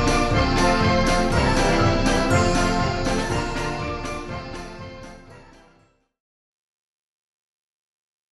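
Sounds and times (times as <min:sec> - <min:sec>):
medley of traditional Portuguese folk tunes: 0:00.0 - 0:06.0.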